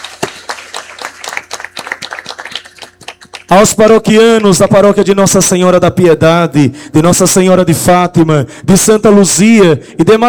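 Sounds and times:
audience applause: 0:00.0 - 0:03.5
speech: 0:03.5 - 0:10.2.

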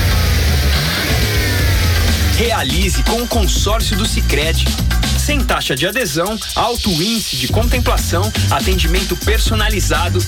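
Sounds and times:
car engine revving and accelerating: 0:00.0 - 0:05.4
speech: 0:02.4 - 0:10.2.

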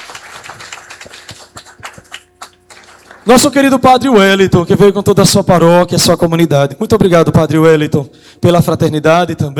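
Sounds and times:
crowd applause: 0:00.0 - 0:03.3
speech: 0:03.2 - 0:09.5.

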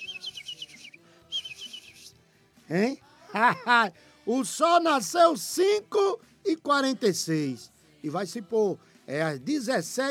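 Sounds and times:
small birds twittering at sunrise: 0:00.0 - 0:02.0
speech: 0:02.7 - 0:10.0.

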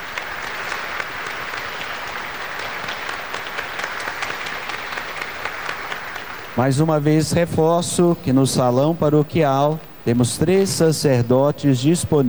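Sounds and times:
applause: 0:00.0 - 0:07.5
speech: 0:06.6 - 0:12.2.

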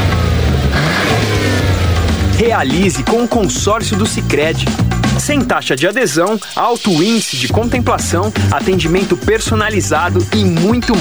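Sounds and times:
car engine revving: 0:00.0 - 0:05.4
speech: 0:02.4 - 0:10.9.

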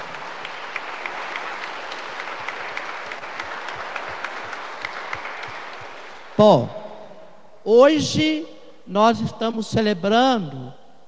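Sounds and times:
audience applause: 0:00.0 - 0:06.5
speech: 0:06.4 - 0:06.8, 0:07.6 - 0:11.0.

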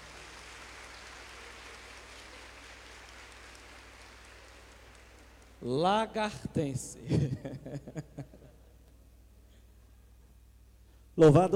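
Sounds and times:
audience applause: 0:00.0 - 0:05.6
speech: 0:05.6 - 0:08.2, 0:11.2 - 0:11.5
laughter: 0:07.1 - 0:08.7.

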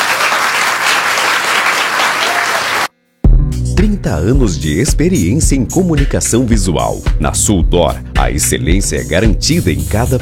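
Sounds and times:
audience applause: 0:00.0 - 0:02.9
speech: 0:03.8 - 0:10.2.

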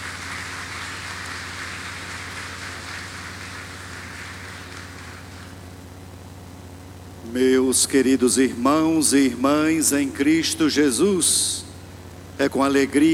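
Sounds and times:
applause: 0:00.0 - 0:05.8
speech: 0:07.3 - 0:11.6, 0:12.4 - 0:13.1.

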